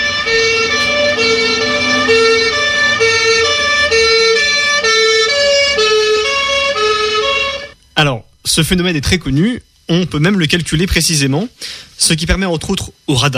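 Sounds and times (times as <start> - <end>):
ambulance siren passing with Doppler pitch shift: 0.0 - 7.8
speech: 8.0 - 13.3.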